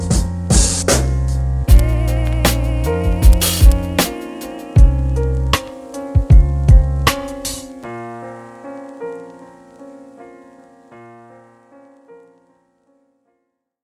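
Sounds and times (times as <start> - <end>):
dirty drums: 0.1 - 1.1, 1.7 - 7.6.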